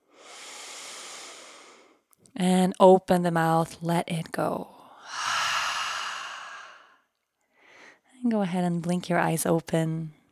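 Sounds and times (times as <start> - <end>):
deep full breath in through the nose: 0.0 - 2.0, 5.0 - 7.0
speech: 2.3 - 4.8, 8.3 - 10.2.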